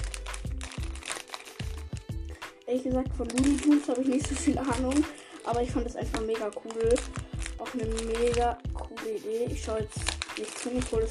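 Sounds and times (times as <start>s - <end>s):
Lego minifigures blind bag plastic crinkling as it is cut open: 0.0s - 11.0s
speech: 2.7s - 11.0s.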